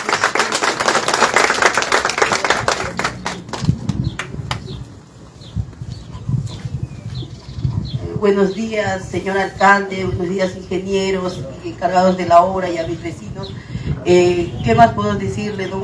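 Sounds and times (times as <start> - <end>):
audience applause: 0.0 - 4.7
speech: 8.2 - 15.8.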